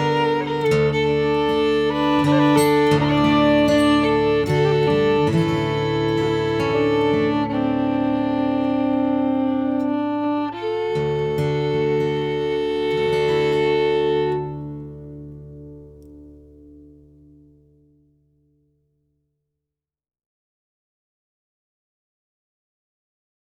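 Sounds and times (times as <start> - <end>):
waltz music: 0.0 - 15.0.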